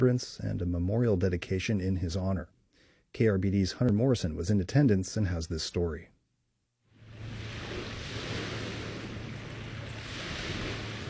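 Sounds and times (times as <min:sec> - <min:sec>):
speech: 0:00.0 - 0:06.1
distant ocean waves crashing on shore: 0:06.9 - 0:11.0.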